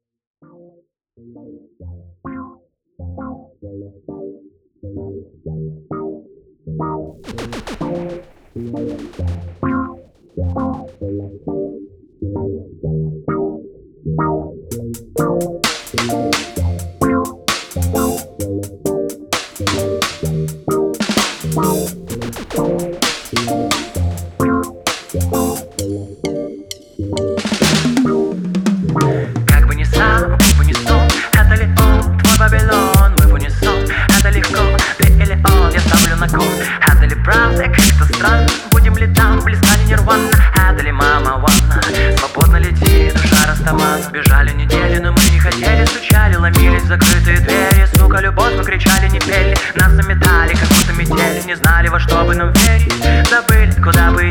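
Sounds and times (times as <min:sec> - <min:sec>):
dubstep music: 0:07.1 - 0:11.0, 0:14.7 - 0:54.2.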